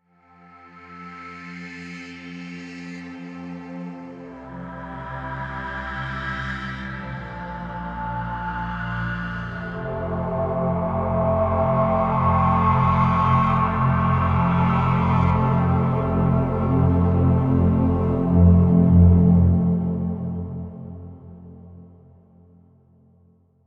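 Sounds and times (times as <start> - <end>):
synth pad: 3.8 - 22.1.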